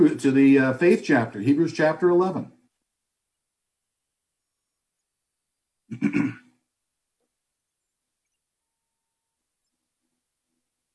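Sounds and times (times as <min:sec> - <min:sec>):
speech: 0:00.0 - 0:02.6, 0:05.9 - 0:06.4
coughing: 0:05.9 - 0:06.6.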